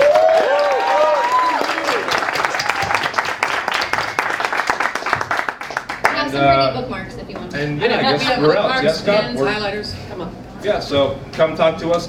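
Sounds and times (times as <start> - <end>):
people cheering and whooping: 0.0 - 3.9
audience applause: 0.0 - 6.2
speech: 6.4 - 12.0.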